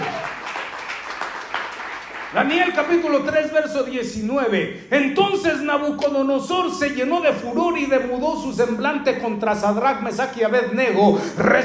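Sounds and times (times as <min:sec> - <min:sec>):
crowd applause: 0:00.0 - 0:02.8
speech: 0:02.3 - 0:11.6.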